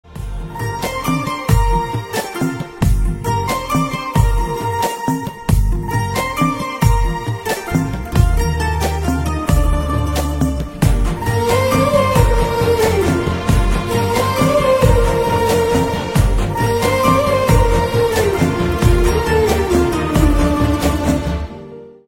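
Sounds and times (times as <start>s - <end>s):
background music ringtone: 0.0s - 22.0s.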